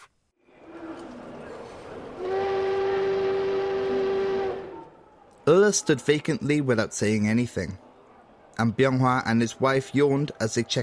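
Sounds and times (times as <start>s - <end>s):
train departing: 0.5s - 5.2s
train whistle: 2.2s - 4.9s
speech: 5.5s - 7.8s, 8.6s - 10.8s.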